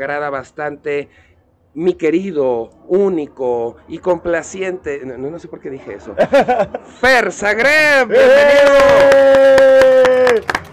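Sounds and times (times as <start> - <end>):
speech: 0.0 - 10.5
laughter: 5.8 - 7.3
people applauding: 8.2 - 10.7.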